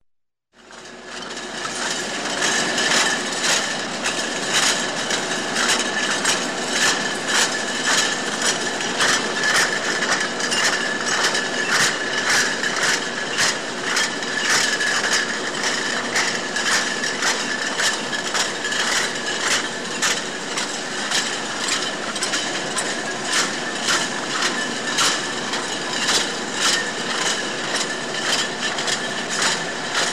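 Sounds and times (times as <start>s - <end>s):
bottles on a filling line at a liquor and vodka factory: 1.0s - 30.1s.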